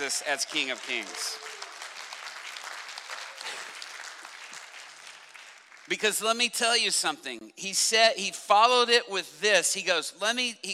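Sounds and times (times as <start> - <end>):
audience clapping: 0.0 - 6.5
speech: 0.1 - 1.6, 5.9 - 10.7.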